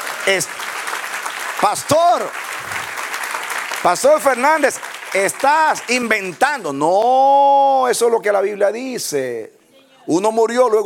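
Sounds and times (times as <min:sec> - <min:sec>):
audience applauding: 0:00.0 - 0:06.9
speech: 0:00.2 - 0:00.7, 0:01.6 - 0:02.8, 0:03.8 - 0:10.8.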